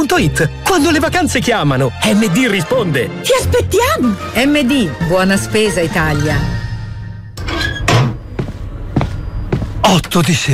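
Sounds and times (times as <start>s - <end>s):
speech: 0.1s - 6.6s, 9.9s - 10.5s
apartment door on a third floor being opened: 7.4s - 8.2s.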